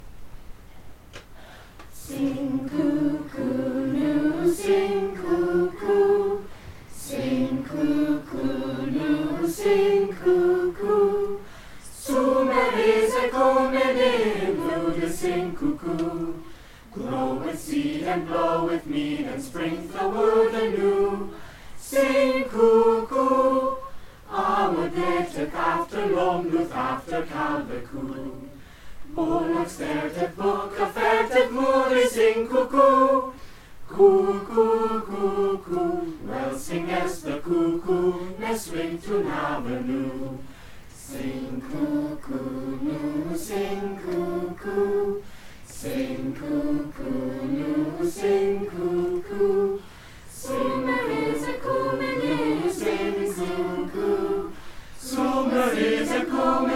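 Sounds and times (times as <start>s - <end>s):
chorus singing: 1.8s - 56.7s.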